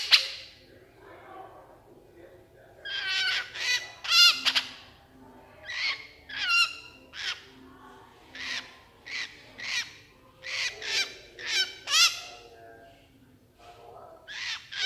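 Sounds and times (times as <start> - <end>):
Horsfield's bush lark rasping song: 2.8 - 4.9, 5.6 - 7.5, 8.3 - 12.5, 14.3 - 14.8.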